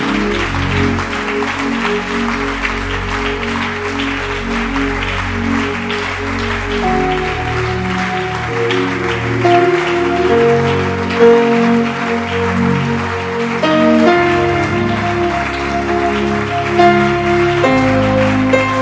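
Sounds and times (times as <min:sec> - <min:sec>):
crowd clapping: 0:00.0 - 0:18.8
sustained musical chords and shifting low notes: 0:06.8 - 0:18.8.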